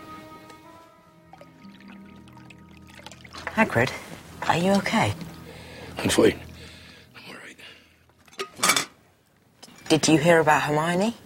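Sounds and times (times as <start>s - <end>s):
tea pouring from a pot into a cup: 1.3s - 6.7s
speech: 3.6s - 5.3s, 6.0s - 6.4s, 9.9s - 11.2s.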